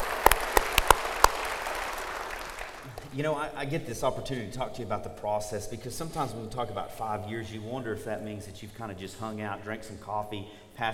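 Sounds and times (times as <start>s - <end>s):
scattered hand claps: 0.0s - 3.1s
speech: 3.2s - 10.9s.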